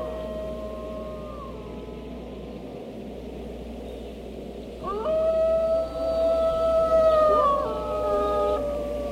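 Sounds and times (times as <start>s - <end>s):
several wolves howling and baying: 0.0s - 2.7s, 4.8s - 9.1s.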